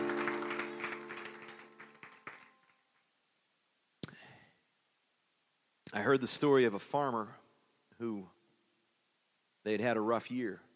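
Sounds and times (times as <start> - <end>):
audience applause: 0.0 - 2.8
speech: 6.0 - 7.4, 8.0 - 8.4, 9.6 - 10.7.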